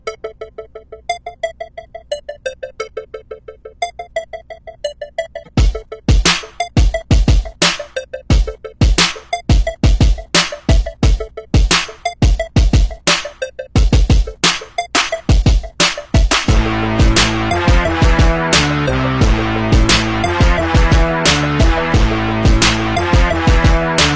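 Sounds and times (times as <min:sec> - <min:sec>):
strong beat: 0:05.5 - 0:24.1.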